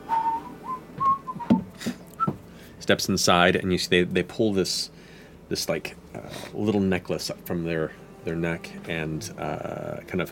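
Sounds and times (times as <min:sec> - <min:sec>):
dull breathy whistle: 0:00.1 - 0:01.6
speech: 0:02.9 - 0:10.2.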